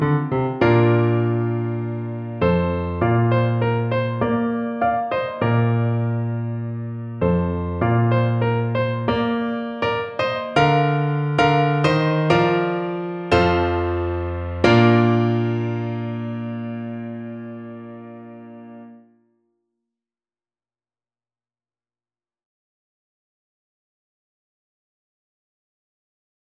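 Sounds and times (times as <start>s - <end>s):
slow piano: 0.0s - 19.1s.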